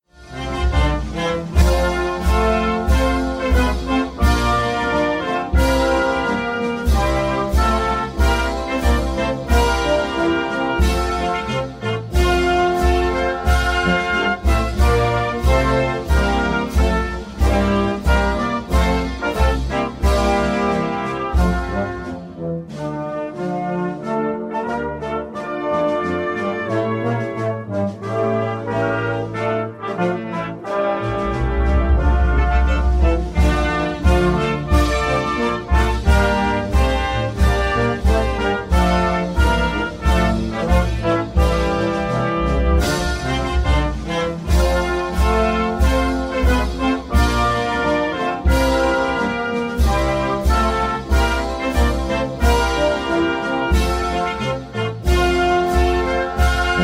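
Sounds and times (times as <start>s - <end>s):
instrumental national anthem: 0.0s - 56.8s.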